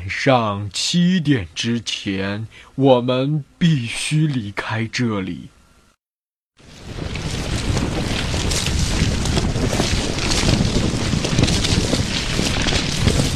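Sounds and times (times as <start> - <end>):
speech: 0.1 - 5.6
storm sound effect of heavy rain: 6.6 - 13.3
storm sound effect of strong wind: 6.6 - 13.3.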